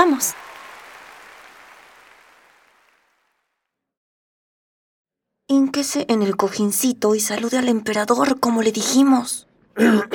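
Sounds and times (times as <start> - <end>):
audience applause: 0.0 - 3.6
speech: 0.1 - 0.5, 5.5 - 10.1.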